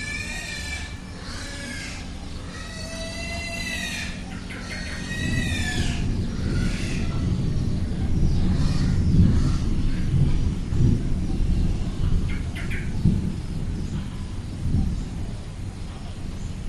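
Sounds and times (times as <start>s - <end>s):
birds in rural Bali Indonesia: 0.0s - 16.6s
pigs in rural Bali Indonesia: 0.1s - 7.2s
approaching thunderstorm in Bali Indonesia: 1.0s - 16.6s.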